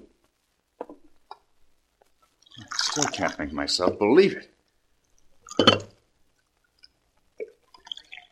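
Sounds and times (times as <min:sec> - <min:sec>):
coffee pouring into cup: 0:02.4 - 0:03.5, 0:06.8 - 0:08.2
speech: 0:03.0 - 0:04.5.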